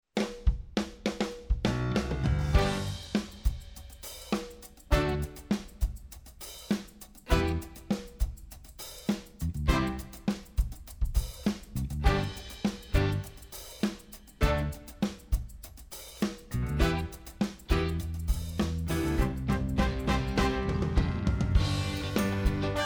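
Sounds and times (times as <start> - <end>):
instrumental music: 0.2 - 22.8.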